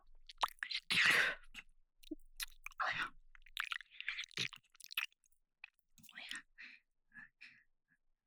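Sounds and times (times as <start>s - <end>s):
ear licking in left and right channels: 0.3s - 1.1s, 2.1s - 5.1s
sweet whispering in left and right channels: 2.4s - 5.0s, 6.1s - 6.6s.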